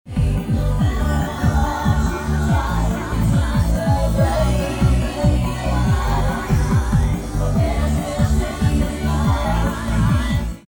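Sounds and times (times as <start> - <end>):
instrumental music: 0.4 - 9.9.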